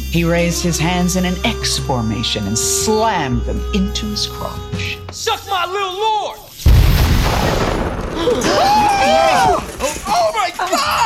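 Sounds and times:
speech: 0.1 - 6.5, 7.3 - 11.0
toy car exploding: 6.6 - 10.7.

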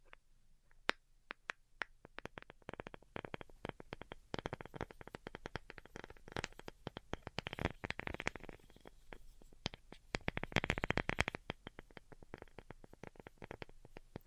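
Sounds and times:
delicate ASMR tapping: 0.9 - 14.2.

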